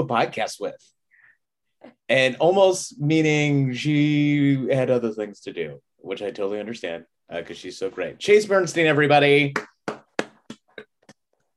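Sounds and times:
speech: 0:00.0 - 0:01.0, 0:01.8 - 0:10.0
person clapping for themselves: 0:09.5 - 0:11.3.

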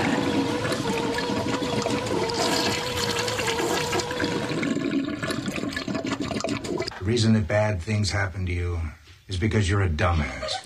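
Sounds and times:
toilet flushing: 0:00.0 - 0:07.0
speech: 0:07.1 - 0:10.6.

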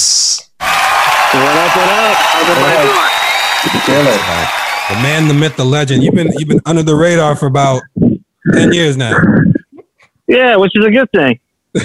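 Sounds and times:
audience applause: 0:00.6 - 0:06.0
speech: 0:01.4 - 0:09.6, 0:10.3 - 0:11.8.

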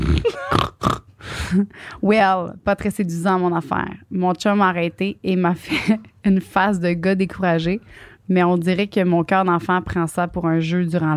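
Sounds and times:
person imitating pig oinks: 0:00.0 - 0:01.1
speech: 0:01.5 - 0:11.1.

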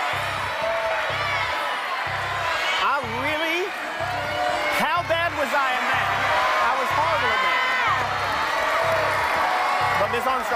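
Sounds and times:
quiz-show studio audience yelling a word together: 0:00.0 - 0:10.5
speech: 0:10.1 - 0:10.5.

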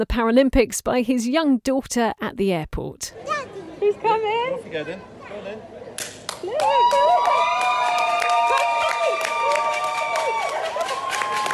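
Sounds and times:
speech: 0:00.0 - 0:05.8, 0:06.4 - 0:07.6
crowd cheering at airport arrival: 0:06.3 - 0:11.5.

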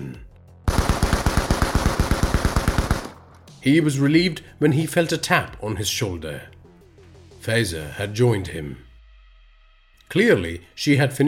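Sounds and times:
machine gun fire aimed at men on a gantry: 0:00.7 - 0:03.2
speech: 0:03.6 - 0:06.5, 0:07.4 - 0:08.9, 0:10.1 - 0:11.2.

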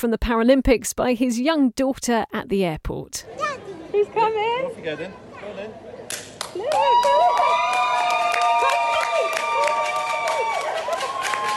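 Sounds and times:
speech: 0:00.0 - 0:07.8
crowd cheering at an airport arrival: 0:06.4 - 0:11.5.

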